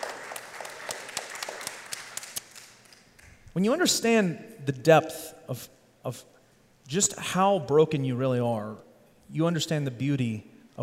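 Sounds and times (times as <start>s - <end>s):
audience applause: 0.0s - 3.1s
speech: 3.6s - 6.3s, 6.9s - 10.8s.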